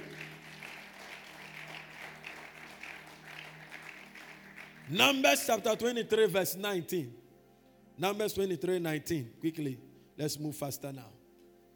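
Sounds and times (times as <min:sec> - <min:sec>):
audience clapping: 0:00.0 - 0:05.5
speech: 0:04.9 - 0:07.2, 0:08.0 - 0:11.2.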